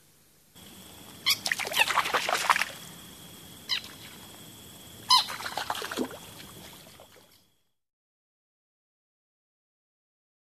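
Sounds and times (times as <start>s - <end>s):
Rana clamitans green frog calls: 0.6s - 7.5s.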